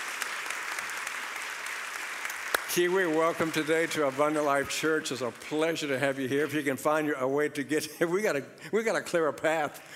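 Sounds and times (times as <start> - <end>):
church congregation applauding at Abundant Life Church: 0.0 - 6.8
speech: 2.7 - 9.9.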